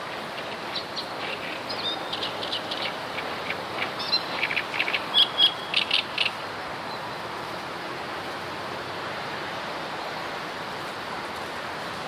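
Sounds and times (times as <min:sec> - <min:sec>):
background hiss: 0:00.0 - 0:12.0
great reed warbler song: 0:00.4 - 0:06.4.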